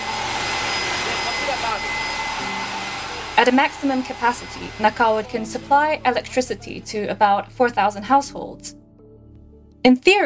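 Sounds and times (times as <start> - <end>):
steam turbine spinning at high speed: 0.0 - 6.5
speech: 3.4 - 8.8, 9.8 - 10.2.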